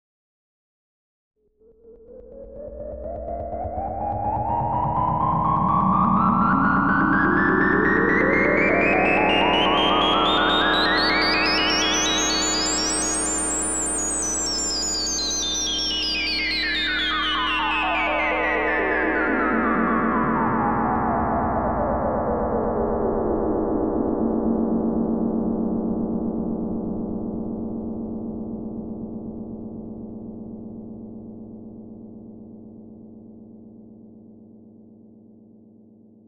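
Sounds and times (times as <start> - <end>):
resonant modular synthesizer: 2.1 - 30.4.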